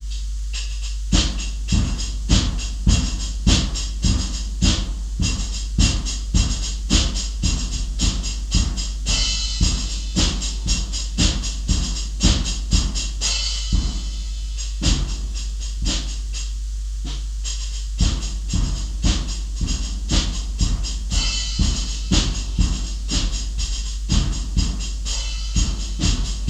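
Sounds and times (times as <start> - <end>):
drum: 0.0 - 26.4.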